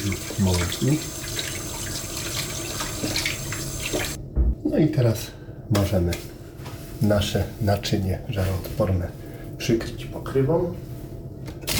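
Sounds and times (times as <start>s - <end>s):
speech: 0.0s - 1.2s, 4.7s - 6.4s, 7.0s - 10.9s
running tap water: 0.0s - 4.2s.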